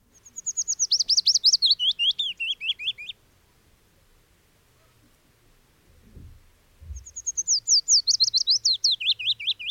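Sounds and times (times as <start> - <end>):
recorded bird chirping call: 0.0 - 3.2, 6.8 - 9.6.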